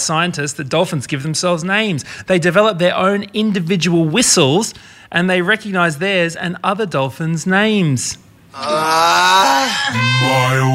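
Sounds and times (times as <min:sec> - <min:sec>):
speech: 0:00.0 - 0:10.7
person groaning: 0:08.6 - 0:10.7.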